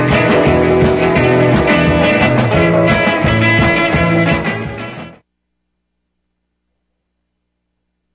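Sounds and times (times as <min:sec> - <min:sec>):
rock rhythm: 0:00.0 - 0:05.2.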